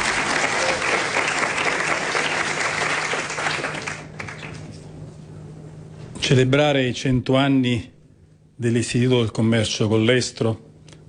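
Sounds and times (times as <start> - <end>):
audience applause: 0.0 - 4.7
speech: 6.3 - 7.9, 8.6 - 10.7.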